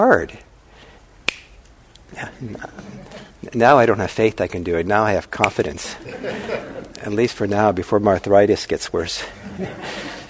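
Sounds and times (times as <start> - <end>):
speech: 0.0 - 0.5, 2.1 - 10.2
single sharp finger snap: 1.2 - 1.7
laughter: 2.4 - 3.3, 5.8 - 7.1, 9.3 - 10.2.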